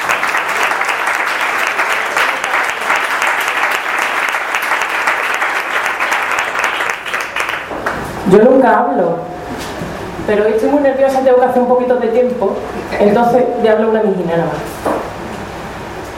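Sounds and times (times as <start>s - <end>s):
audience applause at a live reading of poems and songs: 0.0s - 8.1s
speech: 8.3s - 14.8s.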